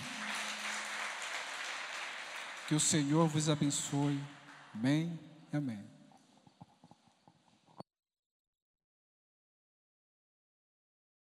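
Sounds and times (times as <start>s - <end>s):
audience applauding: 0.0s - 5.1s
speech: 2.7s - 6.0s.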